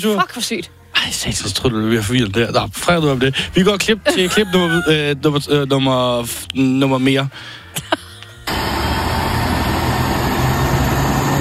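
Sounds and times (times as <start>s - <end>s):
speech: 0.0s - 7.6s
laughter: 3.4s - 5.2s, 7.7s - 8.5s
airplane: 7.3s - 11.3s.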